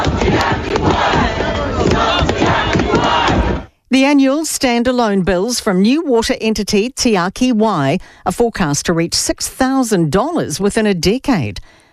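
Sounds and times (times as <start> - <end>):
protest crowd shouting on Parliament steps: 0.0 - 3.7
speech: 4.0 - 11.8.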